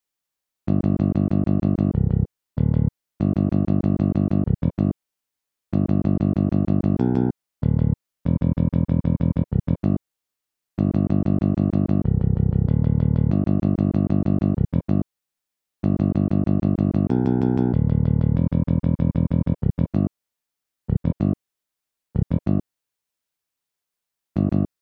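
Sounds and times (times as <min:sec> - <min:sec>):
bass: 0:00.7 - 0:04.9, 0:05.7 - 0:10.0, 0:10.8 - 0:15.0, 0:15.8 - 0:20.1, 0:20.9 - 0:21.3, 0:22.1 - 0:22.7, 0:24.4 - 0:24.8.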